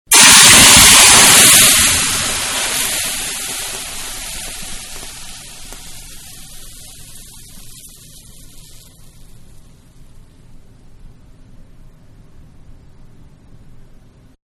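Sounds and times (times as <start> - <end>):
hot pan plunged into cold water: 0.1 - 9.7.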